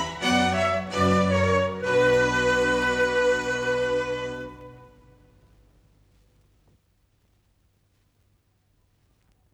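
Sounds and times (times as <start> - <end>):
orchestral minuet in B minor: 0.0 - 5.5.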